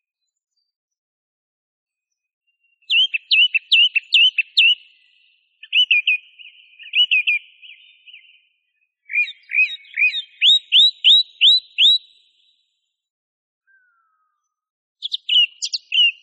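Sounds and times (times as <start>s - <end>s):
song thrush singing whistled notes: 2.5s - 12.7s, 15.0s - 16.2s.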